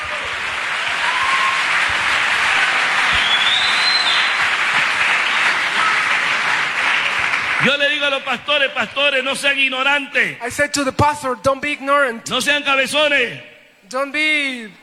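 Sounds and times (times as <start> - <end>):
crowd applause: 0.0 - 9.0
faint whistles: 3.0 - 4.4
speech: 7.6 - 14.8.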